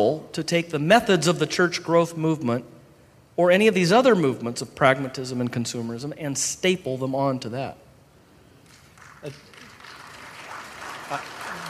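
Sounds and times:
speech: 0.0s - 2.8s, 3.4s - 7.8s, 9.2s - 9.5s, 11.1s - 11.6s
mild audience applause: 8.6s - 11.6s.

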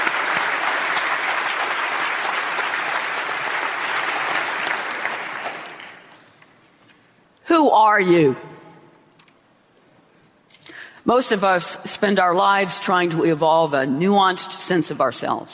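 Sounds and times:
applause from a large audience: 0.0s - 6.2s
speech: 7.7s - 8.5s, 11.1s - 15.5s.

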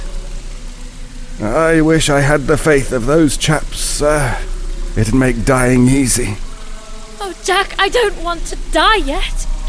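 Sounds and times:
speech: 1.4s - 6.5s, 7.2s - 9.5s
water flooding into a mine: 1.4s - 6.7s.

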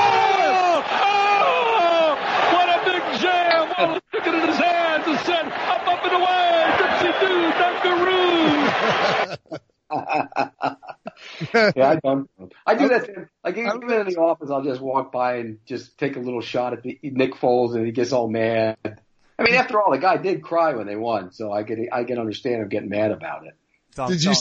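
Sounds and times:
crowd sound effect of whooping and shouting for a podcast: 0.0s - 9.4s
crowd laughter: 3.6s - 11.8s
speech: 3.8s - 4.0s, 11.5s - 24.3s.

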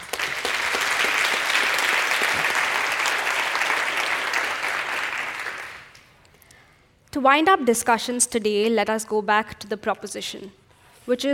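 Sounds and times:
audience applause welcoming a debate speaker: 0.0s - 6.0s
speech: 7.2s - 11.3s.

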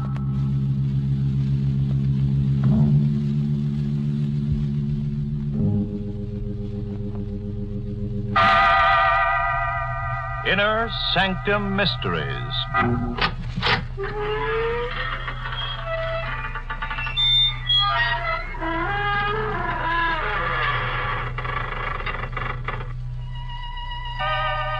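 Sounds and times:
low hum: 0.0s - 24.7s
organ tones: 0.0s - 24.7s
speech: 10.5s - 13.4s
door creaking open: 10.5s - 24.7s.

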